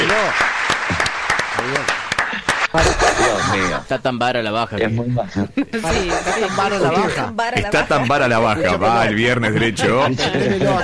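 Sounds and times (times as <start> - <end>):
audience applause: 0.0 - 2.8
speech: 0.2 - 2.0, 2.8 - 10.8
laughter: 2.2 - 4.0, 5.5 - 10.8.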